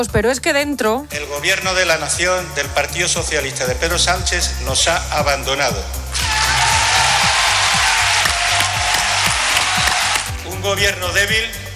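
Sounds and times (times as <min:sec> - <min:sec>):
speech: 0:00.0 - 0:06.3, 0:10.6 - 0:11.6
auditorium audience applauding: 0:06.2 - 0:10.3.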